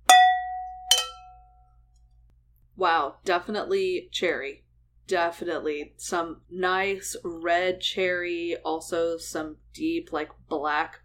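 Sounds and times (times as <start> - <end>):
wine glasses clinking in a toast: 0.0 - 1.6
speech: 2.8 - 11.0.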